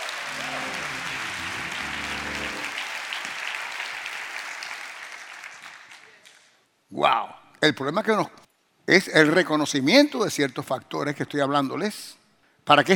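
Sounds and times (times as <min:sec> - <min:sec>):
audience applauding: 0:00.0 - 0:06.4
speech: 0:06.9 - 0:12.9.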